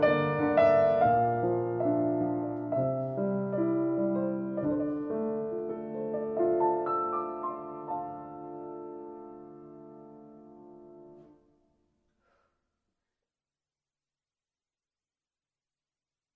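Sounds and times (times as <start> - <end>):
meditative piano music: 0.0 - 11.5.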